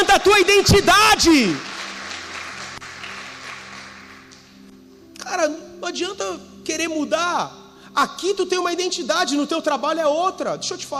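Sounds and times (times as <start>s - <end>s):
audience applause: 0.0s - 4.4s
speech: 0.2s - 1.7s, 5.4s - 10.9s.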